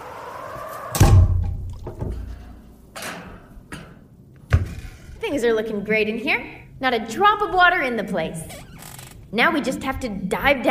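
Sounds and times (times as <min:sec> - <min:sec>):
heavy submarine hatch door swinging shut: 0:01.0 - 0:02.4
speech: 0:05.3 - 0:08.6, 0:09.3 - 0:10.6.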